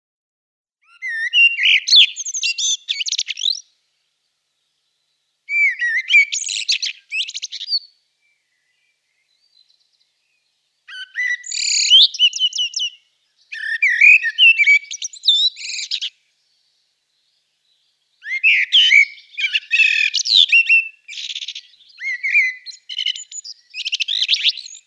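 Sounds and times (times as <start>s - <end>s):
Eurasian blackbird singing: 0.8s - 3.8s, 4.6s - 24.8s.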